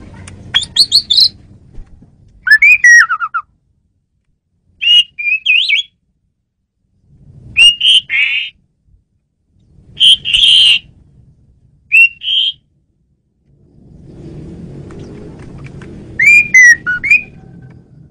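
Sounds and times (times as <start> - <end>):
low rumble: 0.0 - 2.6, 6.0 - 7.6, 8.6 - 11.9, 12.6 - 18.0
Asian pied starling whistling: 0.5 - 1.4, 2.4 - 3.5, 4.8 - 6.0, 7.6 - 8.6, 9.9 - 10.9, 11.9 - 12.7, 16.2 - 17.5.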